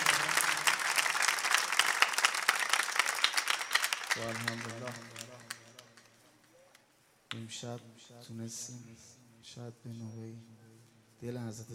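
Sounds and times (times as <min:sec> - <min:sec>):
audience clapping: 0:00.0 - 0:06.6
speech: 0:04.2 - 0:05.2, 0:07.3 - 0:10.6, 0:11.2 - 0:11.7.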